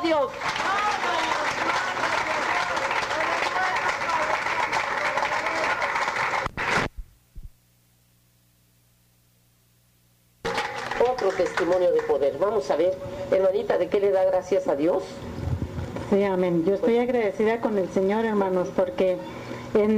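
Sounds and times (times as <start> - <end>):
audience applause: 0.0 - 6.9, 10.4 - 12.3
speech: 0.1 - 1.2, 11.4 - 15.3, 16.1 - 19.9.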